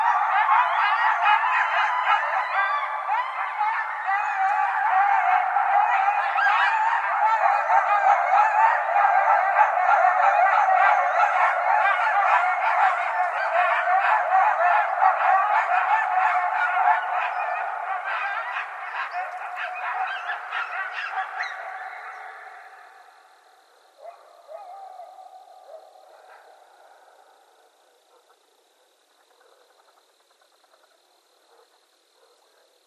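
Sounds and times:
coyote chorus yipping and yelping: 0.0 - 32.8.

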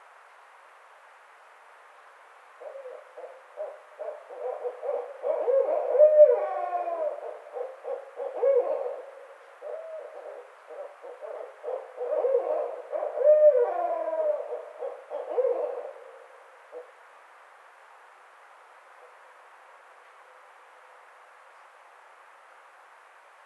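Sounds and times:
barred owl caterwauling and cackling: 2.6 - 16.9.

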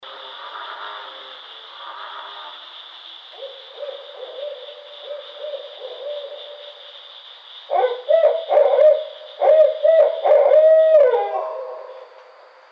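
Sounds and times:
barred owl hooting: 3.4 - 6.7, 7.7 - 12.2.

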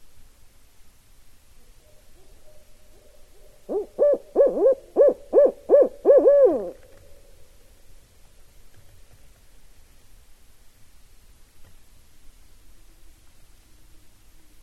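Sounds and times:
Barred Owl calling: 1.8 - 7.3.

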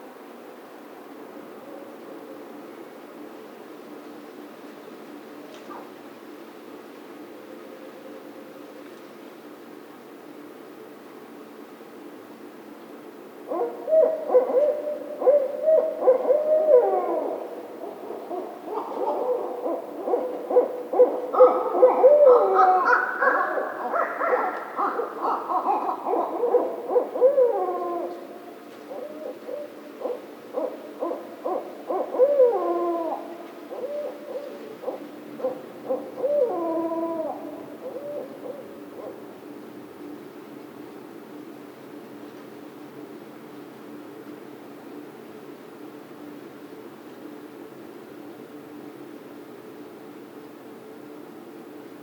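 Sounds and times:
barred owls hooting: 13.5 - 39.2.

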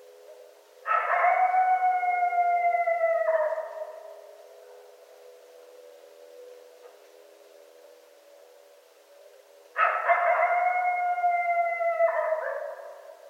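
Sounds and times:
coyotes howling at night: 0.8 - 4.3, 9.8 - 13.2.

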